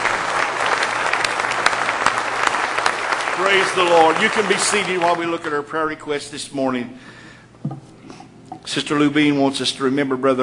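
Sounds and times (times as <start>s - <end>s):
audience hand clapping in praise: 0.0s - 6.0s
speech: 3.4s - 7.8s, 8.7s - 10.4s.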